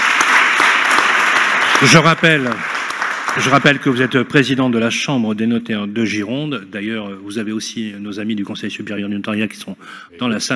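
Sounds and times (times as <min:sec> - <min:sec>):
audience applause: 0:00.0 - 0:04.5
speech: 0:01.8 - 0:02.7, 0:03.4 - 0:10.5.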